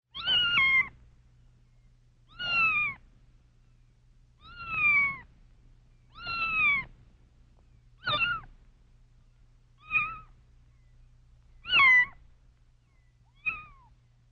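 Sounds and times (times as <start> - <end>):
kitten meowing plaintively: 0.1 - 1.0, 2.3 - 3.0, 4.4 - 5.3, 6.1 - 6.9, 8.0 - 8.5, 9.8 - 10.4, 11.6 - 12.2, 13.3 - 13.9.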